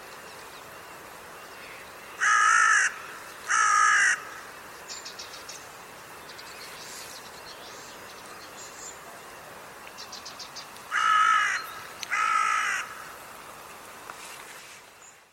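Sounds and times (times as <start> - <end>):
background hiss: 0.0 - 15.3
bird harsh caw: 2.2 - 4.5, 10.9 - 13.2.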